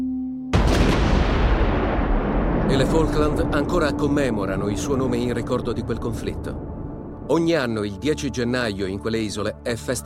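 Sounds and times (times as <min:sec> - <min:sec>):
cannon fire in the Falklands war: 0:00.6 - 0:04.3
speech: 0:02.7 - 0:06.7, 0:07.3 - 0:10.0.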